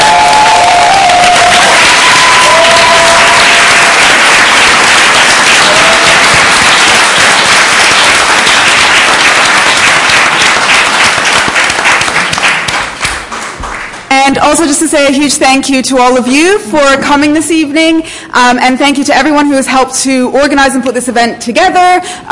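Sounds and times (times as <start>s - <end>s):
audience applause: 0.0s - 14.1s
speech: 14.8s - 22.3s.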